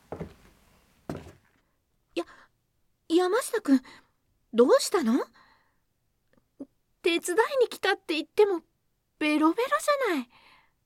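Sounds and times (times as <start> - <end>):
footsteps approaching: 0.0 - 1.6
speech: 3.2 - 5.4, 7.0 - 10.4.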